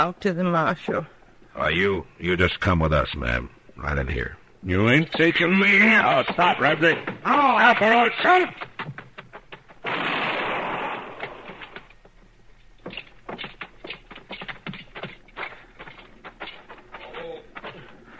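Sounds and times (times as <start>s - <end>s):
speech: 0.0s - 9.0s
gunshot in a western radio drama: 9.8s - 11.8s.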